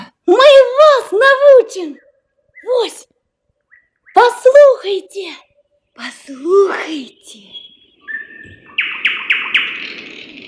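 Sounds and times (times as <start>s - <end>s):
speech: 1.1s - 3.2s, 4.2s - 7.6s
birds singing: 1.5s - 4.7s, 5.4s - 10.4s.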